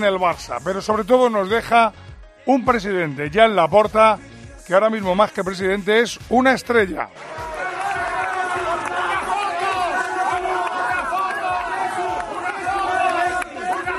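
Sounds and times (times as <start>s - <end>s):
speech: 0.0s - 7.5s
crowd cheering as club president leaves hotel: 7.1s - 13.9s.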